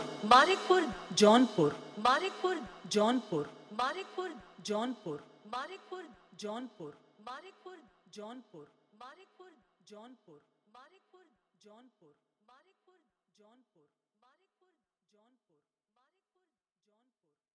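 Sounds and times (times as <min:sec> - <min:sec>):
Bhojpuri DJ song with hard dholak and bass: 0:00.0 - 0:04.2.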